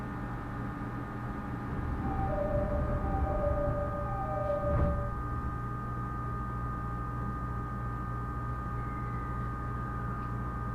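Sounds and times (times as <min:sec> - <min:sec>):
train motor hum: 0:00.1 - 0:10.7
Uchibo Line rapid train rumble: 0:01.3 - 0:05.7
short whining tones: 0:01.6 - 0:06.0.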